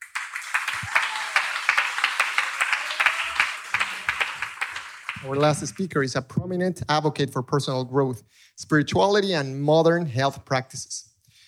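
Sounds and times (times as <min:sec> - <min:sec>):
audience applause: 0:00.0 - 0:05.8
speech: 0:05.2 - 0:11.1.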